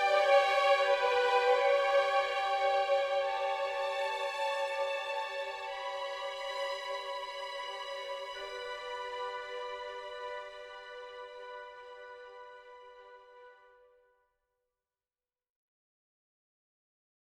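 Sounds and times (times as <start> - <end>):
world music: 0.0 - 13.4.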